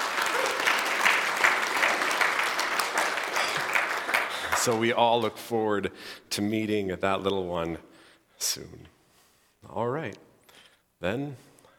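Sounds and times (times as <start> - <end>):
audience clapping: 0.0 - 5.2
speech: 4.6 - 9.0, 9.6 - 10.3, 11.0 - 11.5.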